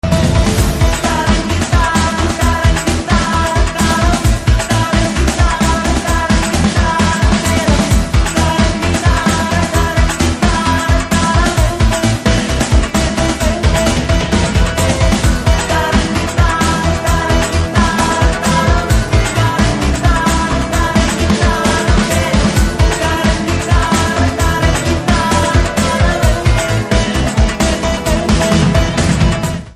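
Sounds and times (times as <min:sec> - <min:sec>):
Telugu background music ringtone: 0:00.0 - 0:29.7.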